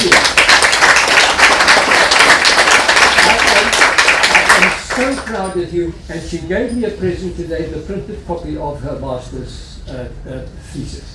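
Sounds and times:
audience applause: 0.0 - 5.3
speech: 5.6 - 11.1.

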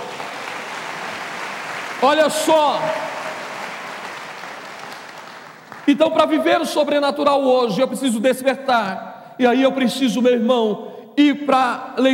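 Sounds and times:
audience applause: 0.0 - 6.0
speech: 2.0 - 3.1, 5.9 - 12.1.

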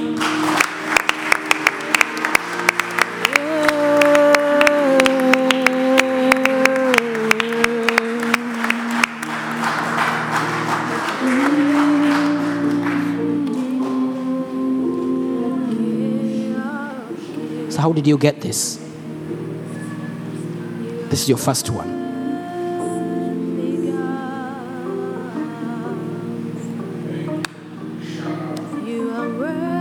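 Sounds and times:
audience clapping in rhythm: 0.0 - 14.4
sustained music with held tones: 0.0 - 29.8
speech: 18.0 - 18.9, 21.2 - 22.0.

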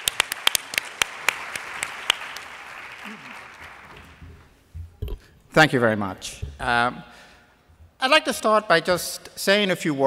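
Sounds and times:
sparse audience applause welcoming a professor: 0.0 - 4.6
speech: 5.6 - 7.1, 8.0 - 10.0.

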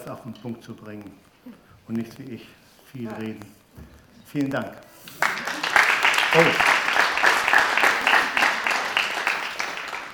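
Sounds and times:
speech: 0.1 - 5.4, 6.3 - 6.7
audience applause: 5.1 - 10.1.

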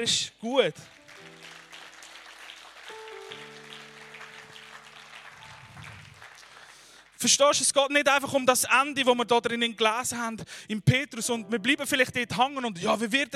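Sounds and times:
speech: 0.0 - 1.0, 7.2 - 13.3
audience applause: 0.8 - 7.2.

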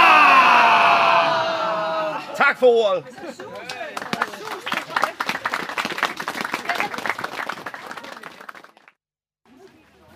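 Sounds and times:
crowd shouting hurrah for the penguins' new house: 0.0 - 5.0
speech: 2.4 - 3.7.

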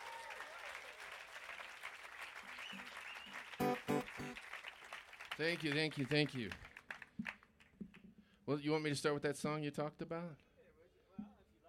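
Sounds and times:
audience applause welcoming a musician at a FloydFest workshop: 0.0 - 7.4
speech: 5.4 - 6.6, 8.5 - 10.4.

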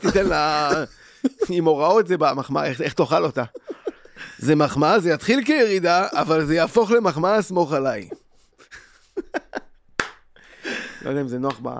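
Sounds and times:
laughter: 0.0 - 1.7, 3.2 - 4.6, 7.8 - 9.7
speech: 0.1 - 8.2, 11.0 - 11.7
hand claps: 10.0 - 10.3, 11.4 - 11.7.

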